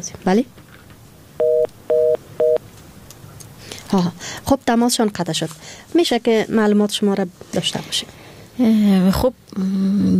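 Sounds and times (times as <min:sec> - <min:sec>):
speech: 0:00.0 - 0:00.6, 0:03.9 - 0:10.1
telephone keypad dialing tones: 0:01.4 - 0:02.6.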